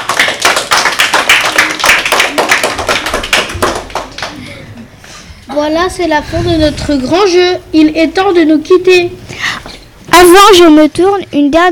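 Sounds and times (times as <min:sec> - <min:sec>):
audience clapping: 0:00.0 - 0:04.5
speech: 0:05.6 - 0:09.3, 0:10.2 - 0:11.6.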